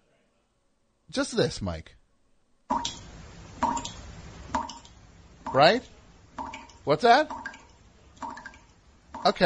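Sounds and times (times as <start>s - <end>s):
speech: 1.1s - 2.0s, 5.5s - 5.9s, 6.8s - 7.4s, 9.2s - 9.4s
water drips sound effect: 2.7s - 9.4s.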